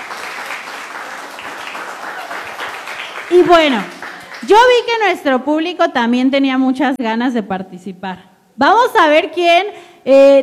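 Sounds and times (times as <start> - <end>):
loud applause: 0.0 - 4.5
speech: 3.3 - 10.4.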